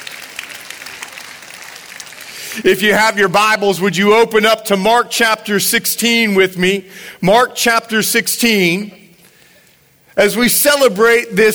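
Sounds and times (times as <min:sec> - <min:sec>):
audience clapping: 0:00.0 - 0:02.9
speech: 0:02.6 - 0:09.0, 0:10.2 - 0:11.5.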